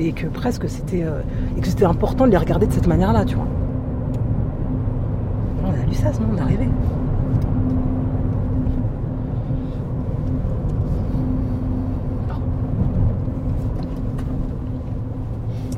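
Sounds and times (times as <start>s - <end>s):
speech: 0.0s - 3.6s, 5.7s - 7.4s
car driving and pulling up with low engine rumble: 0.0s - 15.7s
constant droning hum: 0.0s - 15.7s.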